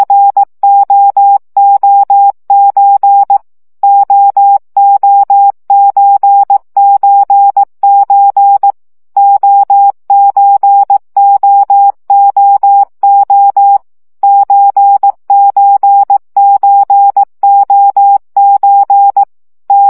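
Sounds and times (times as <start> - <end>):
CW practice signal at 15 baud: 0.0 - 19.8.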